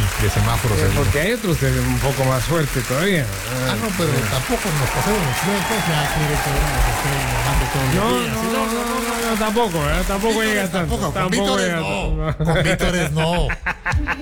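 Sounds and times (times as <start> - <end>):
audience applauding: 0.0 - 11.8
laughter: 0.0 - 14.2
speech: 0.2 - 14.2.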